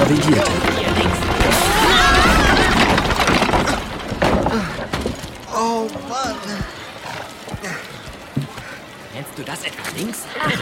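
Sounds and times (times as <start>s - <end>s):
carriage colliding during a gallop through city streets: 0.0s - 5.6s
speech: 0.1s - 1.6s, 9.4s - 10.6s.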